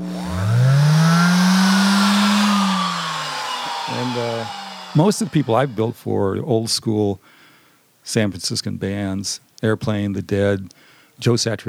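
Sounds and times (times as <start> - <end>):
hand sander motor running: 0.0 - 6.1
speech: 5.0 - 7.4, 8.0 - 11.6.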